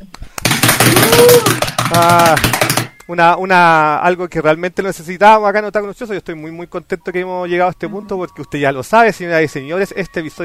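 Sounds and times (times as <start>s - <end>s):
applause sound effect: 0.4s - 2.9s
speech: 1.2s - 10.4s.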